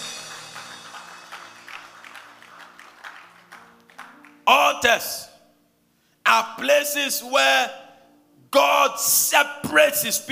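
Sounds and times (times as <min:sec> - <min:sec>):
audience clapping: 0:00.0 - 0:04.6
speech: 0:04.5 - 0:05.3, 0:06.3 - 0:07.8, 0:08.5 - 0:10.3.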